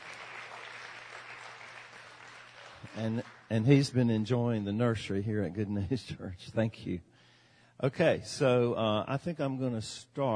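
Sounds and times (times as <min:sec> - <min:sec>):
crowd applause: 0:00.0 - 0:03.9
speech: 0:02.9 - 0:07.1, 0:07.8 - 0:10.3.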